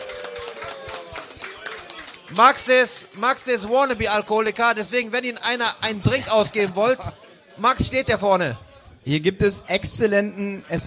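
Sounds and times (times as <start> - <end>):
audience applause: 0.0 - 3.5
speech: 2.3 - 10.8.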